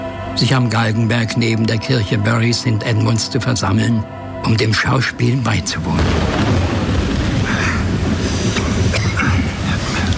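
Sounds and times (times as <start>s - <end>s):
speech: 0.4s - 6.4s
heavy rain: 5.9s - 10.1s
thunder: 5.9s - 10.1s.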